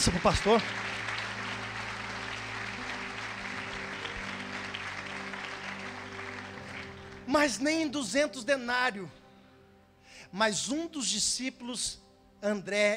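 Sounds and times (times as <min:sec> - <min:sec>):
speech: 0:00.0 - 0:00.8, 0:07.3 - 0:09.2, 0:10.3 - 0:12.9
crowd applause: 0:00.0 - 0:07.6
low sustained musical tones: 0:00.0 - 0:12.9.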